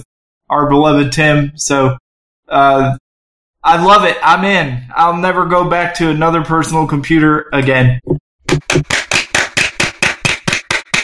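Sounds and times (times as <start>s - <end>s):
speech: 0.0s - 3.0s, 3.6s - 8.9s
one person applauding: 8.8s - 11.0s.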